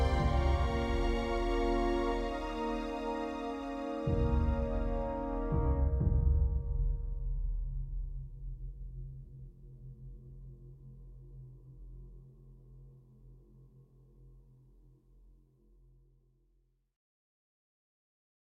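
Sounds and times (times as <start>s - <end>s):
string instrument: 0.0s - 7.3s.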